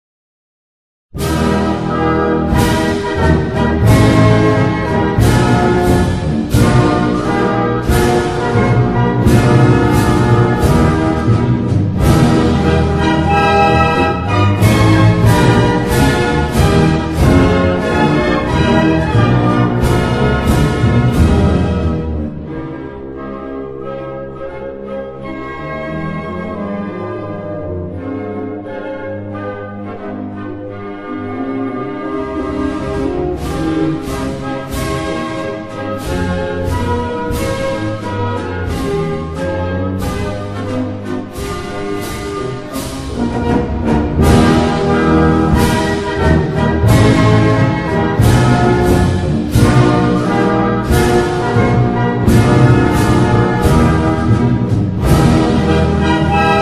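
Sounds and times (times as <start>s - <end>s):
national anthem: 1.2s - 24.6s, 25.3s - 56.6s.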